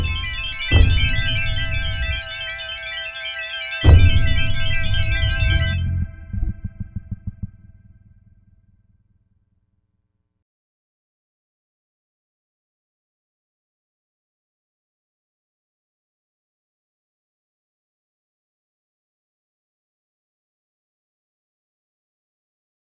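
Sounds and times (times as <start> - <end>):
electronic rhythm: 0.0 - 7.6.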